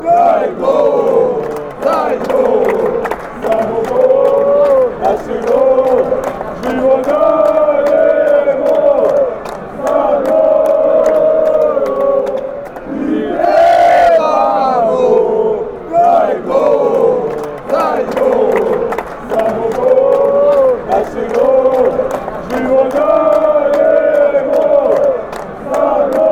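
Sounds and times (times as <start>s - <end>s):
fans chanting: 0.0s - 26.2s.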